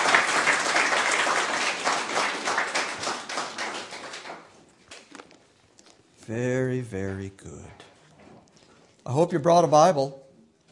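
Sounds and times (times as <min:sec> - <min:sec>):
audience applause for musicians: 0:00.0 - 0:04.6
speech: 0:06.3 - 0:07.9, 0:09.0 - 0:10.2.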